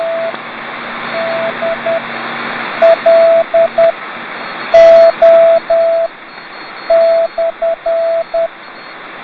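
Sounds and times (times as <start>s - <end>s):
beacon signal: 0.0s - 0.4s, 1.0s - 2.2s, 2.8s - 8.5s.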